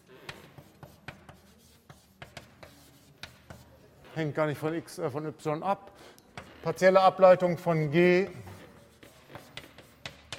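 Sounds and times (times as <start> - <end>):
pen strokes and taps while handwriting a partial derivative calculation: 0.0 - 3.8, 8.4 - 10.3
speech: 4.2 - 8.4.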